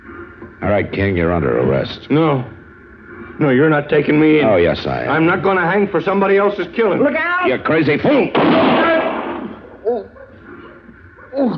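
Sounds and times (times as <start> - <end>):
speech: 0.6 - 2.6, 3.4 - 8.8
gunshot: 8.3 - 9.8.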